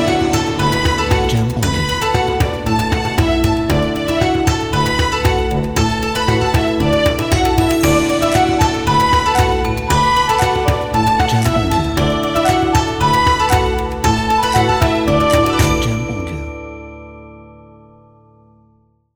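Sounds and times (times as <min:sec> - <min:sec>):
happy Asian background music: 0:00.0 - 0:17.5.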